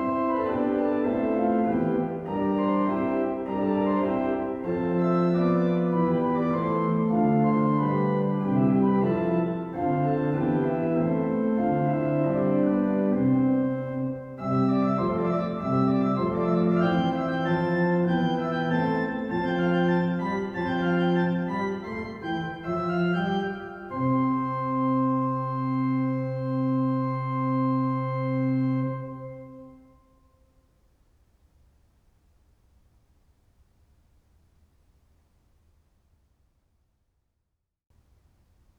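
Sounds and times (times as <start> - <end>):
organ solo with flute stop: 0.0 - 29.9.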